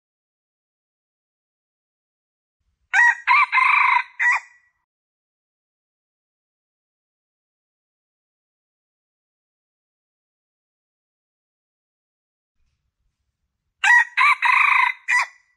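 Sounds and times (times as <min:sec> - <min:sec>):
Red junglefowl crowing: 0:02.9 - 0:04.6, 0:13.8 - 0:15.4.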